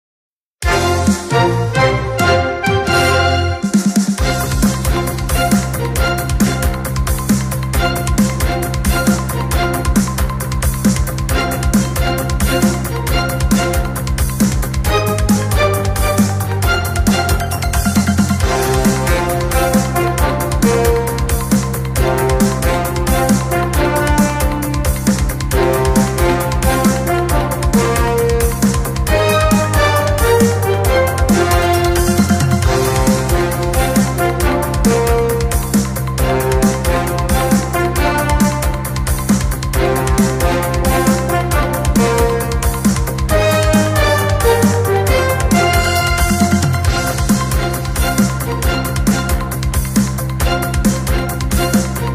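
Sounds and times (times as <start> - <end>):
background music for news, reports and investigations: 0.6 - 52.1.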